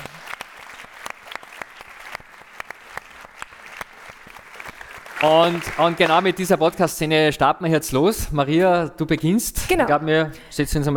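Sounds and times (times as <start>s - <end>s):
audience applause: 0.0s - 6.8s
speech: 5.2s - 10.9s.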